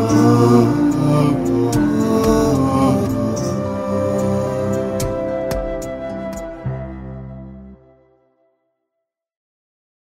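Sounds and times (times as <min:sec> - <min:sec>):
violin: 0:00.0 - 0:08.0
flute: 0:00.0 - 0:08.6.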